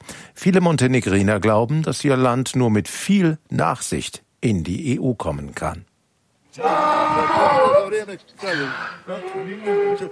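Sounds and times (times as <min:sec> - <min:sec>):
speech: 0:00.4 - 0:05.9, 0:06.6 - 0:10.1
hungry donkey braying: 0:06.6 - 0:10.1.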